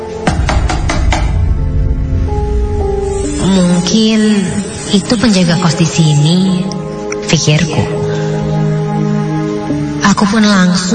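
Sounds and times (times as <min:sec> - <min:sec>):
low musical drone: 0:00.0 - 0:10.6
knocking on a bedroom door: 0:00.2 - 0:01.4
speech: 0:03.9 - 0:08.0, 0:10.2 - 0:10.9.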